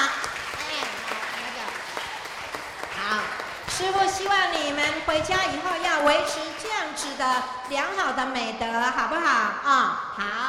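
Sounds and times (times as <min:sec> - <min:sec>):
audience applause: 0:00.0 - 0:04.2
speech: 0:03.8 - 0:10.4.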